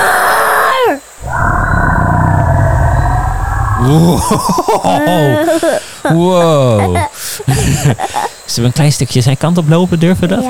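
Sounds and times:
falling cry: 0.0s - 5.9s
deep loud roar: 1.2s - 4.8s
laughter: 3.8s - 8.4s
speech: 3.8s - 10.4s.

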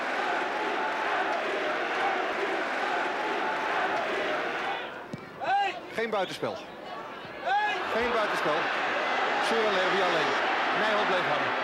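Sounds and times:
stadium crowd applauding: 0.0s - 4.9s, 7.5s - 11.6s
speech: 6.0s - 6.8s, 7.9s - 8.9s, 9.5s - 11.6s.

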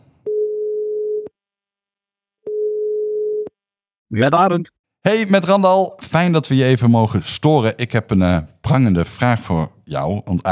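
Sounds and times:
telephone ringing tone on an outgoing call: 0.3s - 1.3s, 2.5s - 3.5s
speech: 4.1s - 10.5s.

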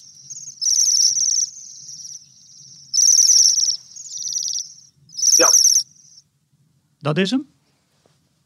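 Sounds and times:
bell-like bird call: 0.0s - 6.2s
speech: 7.0s - 7.6s.

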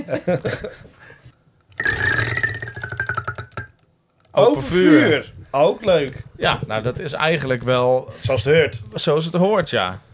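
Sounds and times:
speech: 0.1s - 0.9s, 4.4s - 10.1s
prize wheel spinning and ticking: 1.7s - 3.8s.

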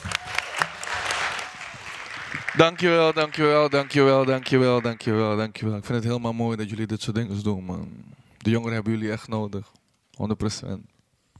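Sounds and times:
audience applause: 0.0s - 5.4s
speech: 2.6s - 10.9s.

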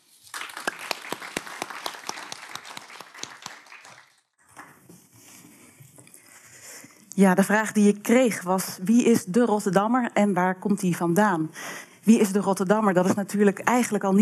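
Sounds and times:
audience applause: 0.0s - 4.2s
speech: 7.2s - 14.2s.

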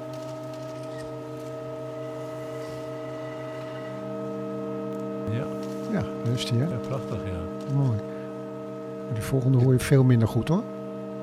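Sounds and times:
sustained organ chord with added pipe tone: 0.0s - 11.2s
speech: 5.3s - 8.1s, 9.1s - 10.7s.

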